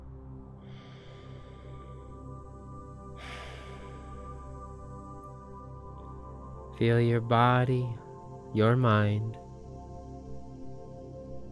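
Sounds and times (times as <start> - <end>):
humming tonal drone: 0.0 - 11.5
slow breath in and out through the nose: 0.6 - 4.5
speech: 6.8 - 9.4.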